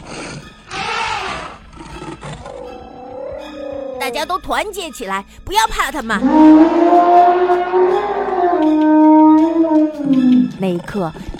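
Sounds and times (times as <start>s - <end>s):
elephants roaring loudly: 0.0s - 4.1s, 6.2s - 10.6s
speech: 4.1s - 7.3s, 10.6s - 11.3s.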